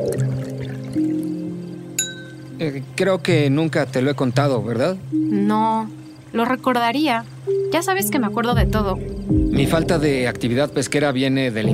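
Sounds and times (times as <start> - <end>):
wine being poured into glasses: 0.0 - 1.4
speech: 2.6 - 11.7.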